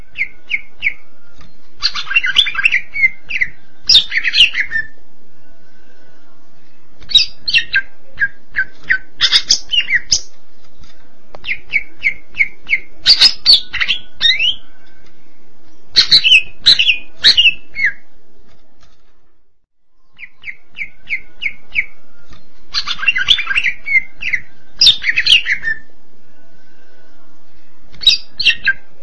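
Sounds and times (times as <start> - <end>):
greater green leafbird cucak ijo song: 0.0 - 19.0, 19.9 - 29.0.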